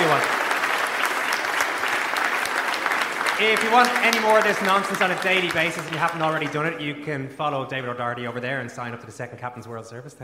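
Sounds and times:
live audience applause: 0.0 - 6.9
speech: 3.4 - 10.2.

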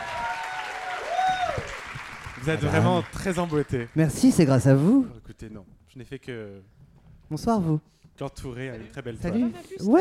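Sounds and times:
audience applause: 0.0 - 4.0
speech: 2.4 - 10.0.

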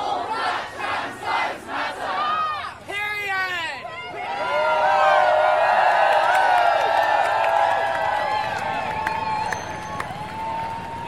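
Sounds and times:
crowd chanting on a trans rights protest march along Piccadilly in central London: 0.0 - 2.9
protest march crowd cheering and shouting on Piccadilly in central London: 2.0 - 11.0.

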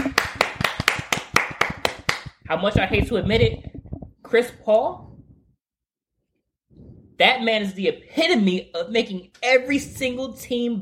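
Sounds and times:
hands clapping: 0.0 - 2.4
speech: 2.5 - 3.7, 4.3 - 5.1, 7.2 - 10.7.

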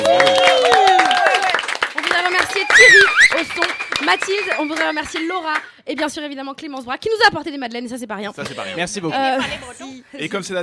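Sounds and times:
audience applause: 0.0 - 5.7
speech: 4.1 - 10.6.

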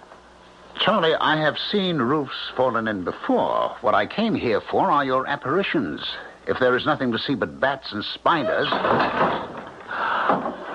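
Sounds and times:
speech: 0.8 - 9.4
front door closing shut: 8.3 - 10.7.

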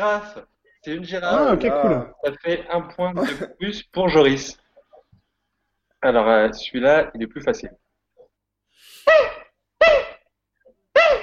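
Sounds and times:
speech: 0.0 - 4.6, 6.0 - 7.8
marmot call: 9.0 - 10.3, 10.9 - 11.2.

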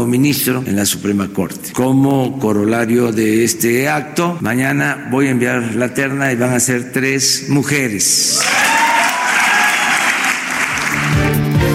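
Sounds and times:
speech: 0.0 - 8.9
applause for the president: 8.4 - 11.7.

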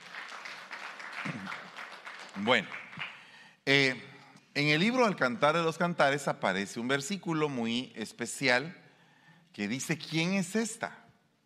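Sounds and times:
audience applauding: 0.0 - 3.4
speech: 2.4 - 2.8, 3.7 - 8.8, 9.6 - 11.0.

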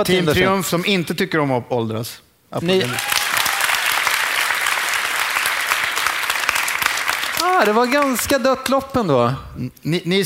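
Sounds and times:
speech: 0.0 - 3.2, 7.6 - 10.2
audience applause: 2.7 - 8.5.

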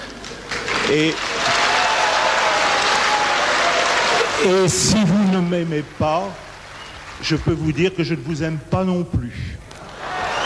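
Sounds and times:
crowd applauding: 0.2 - 7.9, 9.8 - 10.4
speech: 0.9 - 1.4, 4.4 - 6.4, 7.2 - 9.7
audience shouting and whistling: 10.0 - 10.4.

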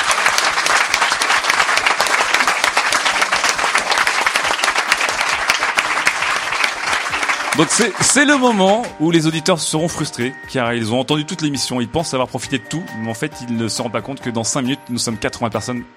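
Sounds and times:
audience applause: 0.0 - 9.0
speech: 7.6 - 15.9.

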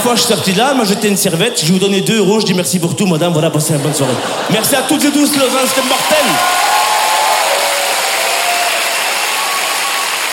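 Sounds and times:
speech: 0.0 - 6.8
laughter: 3.6 - 6.6
large live crowd cheering and applauding: 5.3 - 10.3.

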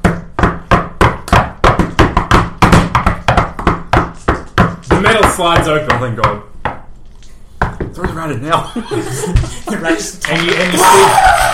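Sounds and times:
knocking on a door: 0.0 - 6.8
speech: 5.0 - 6.5, 8.0 - 11.5
laughter: 8.5 - 11.5.

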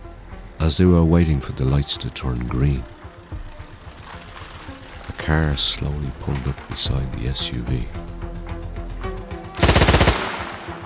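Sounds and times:
speech: 0.6 - 2.9, 5.3 - 8.1
gunshots fired through car passenger window: 9.6 - 10.8.

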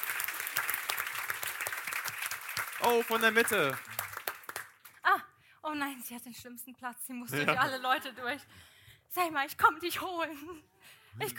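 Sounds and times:
audience applause for a guest: 0.0 - 5.0
speech: 2.8 - 4.0, 5.7 - 11.3.

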